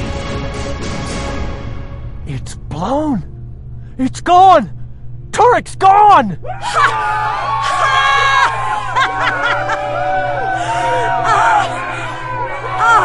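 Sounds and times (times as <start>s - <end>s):
steady low hum: 0.0s - 13.0s
speech: 2.4s - 3.3s, 4.0s - 4.8s, 5.4s - 7.8s
crowd cheering in a control center: 6.5s - 13.0s
laughter: 8.8s - 10.0s.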